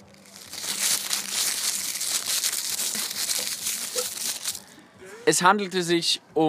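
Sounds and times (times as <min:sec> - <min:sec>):
long rolling paper crinkling: 0:00.0 - 0:04.7
speech: 0:05.3 - 0:06.4.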